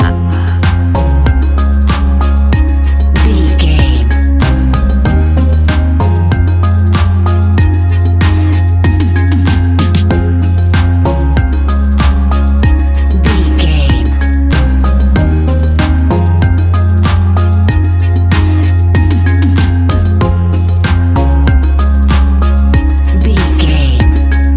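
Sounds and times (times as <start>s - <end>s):
fast-paced club music with bliss beats: 0.0s - 24.5s.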